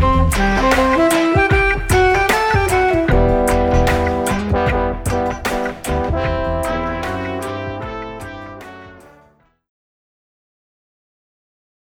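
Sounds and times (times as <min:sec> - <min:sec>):
Bavarian reggae music: 0:00.0 - 0:09.3.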